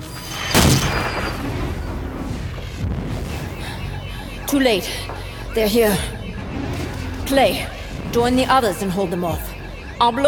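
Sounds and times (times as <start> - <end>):
artillery fire: 0.4 - 3.8
speech: 4.5 - 6.2, 7.3 - 10.2.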